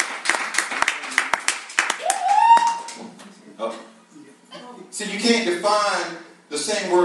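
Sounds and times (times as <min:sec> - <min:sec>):
audience applauding: 0:00.0 - 0:03.0
speech: 0:05.0 - 0:07.0.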